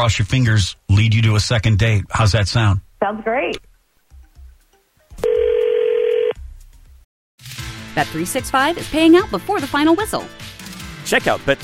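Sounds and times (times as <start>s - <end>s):
speech: 0.0s - 3.7s, 8.0s - 10.5s, 11.1s - 11.6s
telephone tone as a call is placed: 5.2s - 6.4s.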